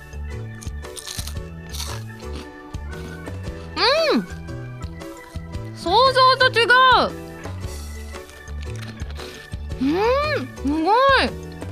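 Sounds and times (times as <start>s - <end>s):
biting into crunchy takoyaki-flavoured puff pastry snack: 0.4s - 2.8s, 7.8s - 9.6s
speech: 6.5s - 7.2s, 9.8s - 11.4s.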